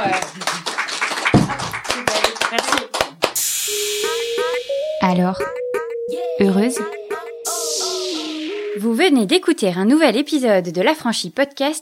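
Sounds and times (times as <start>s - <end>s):
small audience applause: 0.0s - 3.4s
sustained tones: 3.4s - 10.1s
speech: 5.1s - 5.6s, 6.4s - 7.0s, 8.8s - 11.8s.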